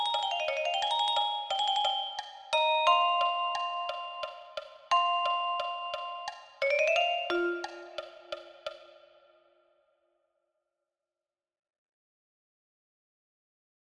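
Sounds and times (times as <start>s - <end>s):
vibraphone: 0.0s - 8.8s.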